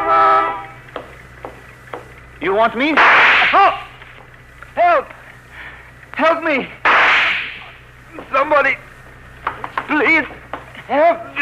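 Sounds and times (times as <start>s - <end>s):
car horn honking: 0.0s - 0.8s
street ambience: 0.0s - 11.3s
speech: 2.4s - 3.8s, 6.4s - 6.7s, 8.4s - 8.8s, 10.9s - 11.3s.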